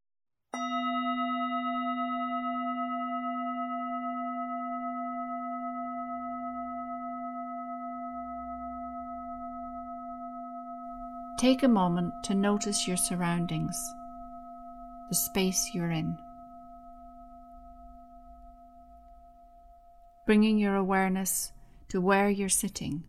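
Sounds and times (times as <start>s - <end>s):
meditation bell ringing: 0.6s - 20.9s
speech: 11.4s - 14.0s, 15.1s - 16.2s, 20.3s - 23.0s.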